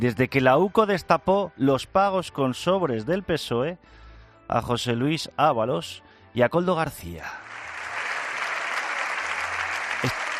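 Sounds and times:
speech: 0.0 - 7.5, 10.0 - 10.2
parliament applause after opposition leader's speech: 7.4 - 10.3.

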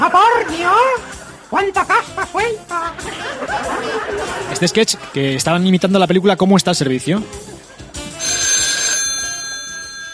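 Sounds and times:
speech: 0.1 - 7.5
laughter: 2.8 - 5.4, 7.2 - 8.1
telephone ringing: 8.1 - 10.1.

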